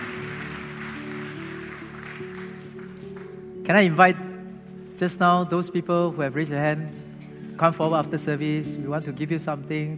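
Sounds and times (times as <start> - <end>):
audience clapping: 0.0 - 3.9
speech: 3.7 - 4.2, 5.0 - 7.0, 7.6 - 9.9.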